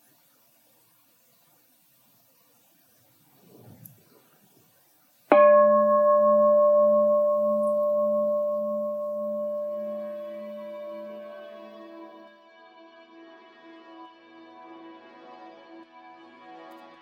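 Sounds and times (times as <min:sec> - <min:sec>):
bell ringing: 0:05.3 - 0:12.3.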